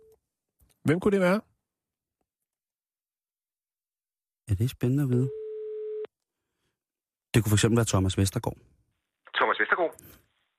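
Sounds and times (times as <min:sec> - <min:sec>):
speech: 0:00.8 - 0:01.5, 0:04.6 - 0:05.4, 0:07.4 - 0:08.7
telephone call tone: 0:05.1 - 0:06.1.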